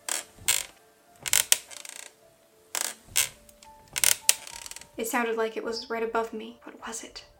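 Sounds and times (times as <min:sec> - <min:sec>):
wooden rocking chair creaking: 0:00.0 - 0:05.1
speech: 0:05.0 - 0:07.3.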